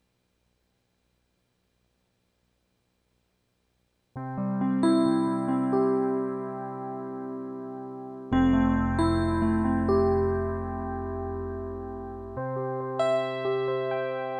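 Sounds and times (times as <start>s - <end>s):
electric piano: 4.2s - 14.3s.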